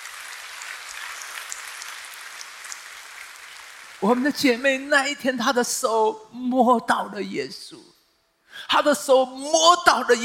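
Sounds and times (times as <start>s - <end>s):
audience applause: 0.0s - 4.2s
speech: 4.0s - 7.9s, 8.6s - 10.2s.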